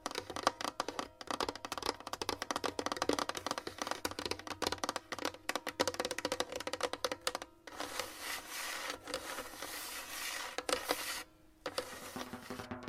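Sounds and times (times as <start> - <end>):
scratching and tapping: 0.0 - 12.7
smooth bright hiss: 7.8 - 12.7.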